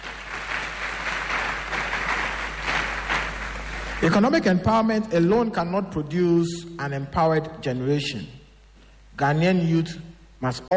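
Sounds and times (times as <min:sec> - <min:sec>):
crowd applauding: 0:00.0 - 0:04.2
speech: 0:04.0 - 0:08.4, 0:09.2 - 0:10.7.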